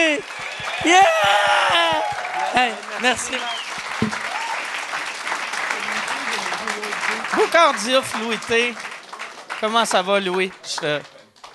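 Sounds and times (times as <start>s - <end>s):
audience applauding: 0.0s - 11.5s
speech: 0.1s - 1.5s, 2.5s - 3.6s, 7.4s - 8.9s, 9.6s - 11.1s
high whoops and shouts: 0.3s - 2.8s, 4.2s - 4.6s.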